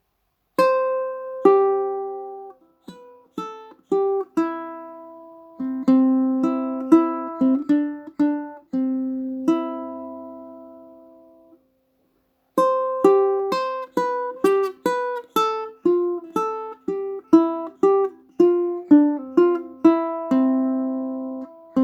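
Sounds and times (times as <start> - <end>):
ukulele: 0.6 - 11.7, 12.6 - 21.8.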